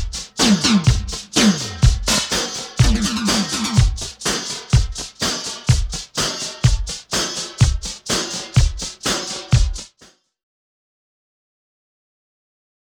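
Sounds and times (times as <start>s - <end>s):
analog electronic drum: 0.0s - 10.1s.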